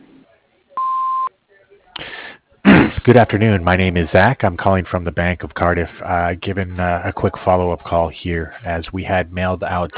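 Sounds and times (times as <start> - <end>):
answering machine beep: 0.8 - 1.3
burst of noise: 2.6 - 3.0
speech: 3.1 - 9.9.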